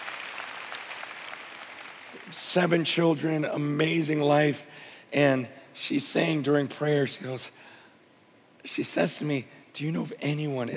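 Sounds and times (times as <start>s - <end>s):
soft audience applause for a 25-year wedding anniversary: 0.0s - 2.4s
speech: 2.2s - 7.6s, 8.6s - 10.7s.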